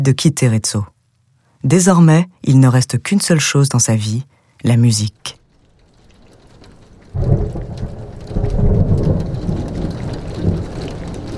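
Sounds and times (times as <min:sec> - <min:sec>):
speech: 0:00.0 - 0:00.9, 0:01.6 - 0:05.4
rain on a rainy day: 0:04.3 - 0:11.3.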